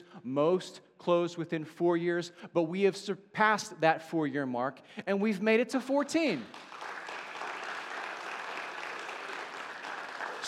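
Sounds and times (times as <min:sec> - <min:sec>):
speech: 0:00.2 - 0:06.7
crowd clapping: 0:06.3 - 0:10.4.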